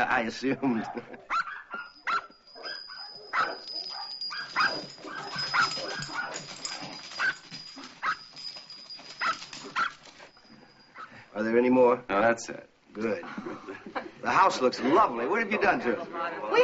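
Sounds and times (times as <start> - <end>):
speech: 0.0 - 1.4, 11.4 - 16.6
dogs barking: 0.8 - 10.3.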